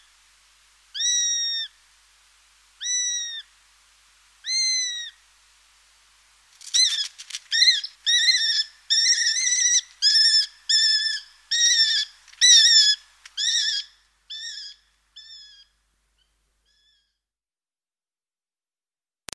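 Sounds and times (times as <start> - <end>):
Eurasian sparrowhawk whistling calls: 0.9 - 1.7, 2.8 - 3.5, 4.5 - 5.1, 6.7 - 15.7, 16.7 - 17.1.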